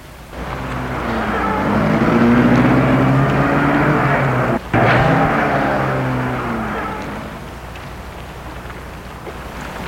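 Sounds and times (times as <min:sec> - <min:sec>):
car engine starting, revving and pulling away: 0:00.4 - 0:07.7.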